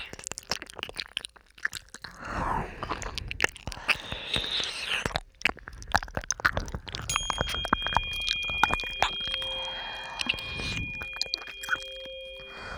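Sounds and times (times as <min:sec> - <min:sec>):
ear licking: 0:00.3 - 0:12.7
tuning fork ringing: 0:07.1 - 0:12.7.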